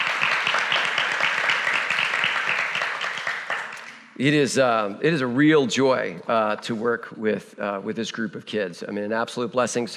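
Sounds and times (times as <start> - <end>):
audience applause: 0.0 - 4.1
speech: 4.2 - 9.9.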